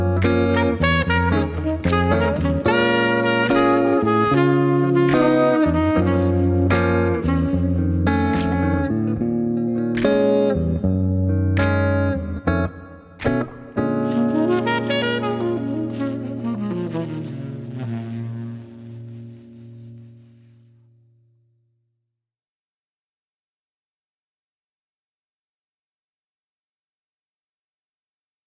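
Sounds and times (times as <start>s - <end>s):
blues accompaniment: 0.0s - 21.0s.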